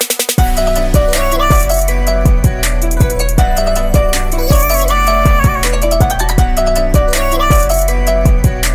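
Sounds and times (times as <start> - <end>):
Punjabi ringtone: 0.4 - 8.7.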